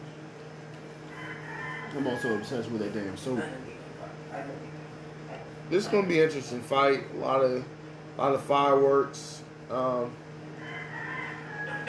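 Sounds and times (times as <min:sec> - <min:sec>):
rooster crowing: 0:01.0 - 0:02.7, 0:10.5 - 0:11.8
speech: 0:02.0 - 0:04.8, 0:05.7 - 0:10.2.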